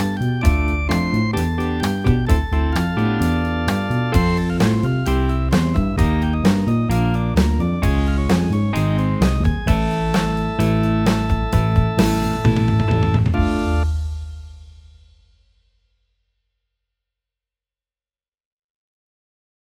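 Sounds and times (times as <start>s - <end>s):
electric piano bass: 0.0s - 14.5s.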